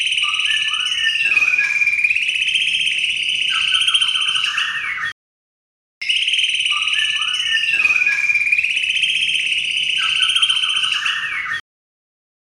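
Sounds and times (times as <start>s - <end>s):
white-rumped shama signature song: 0.0s - 5.2s, 6.0s - 11.6s.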